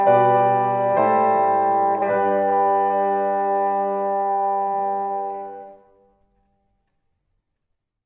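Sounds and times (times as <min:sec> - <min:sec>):
bassoon: 0:00.0 - 0:06.4.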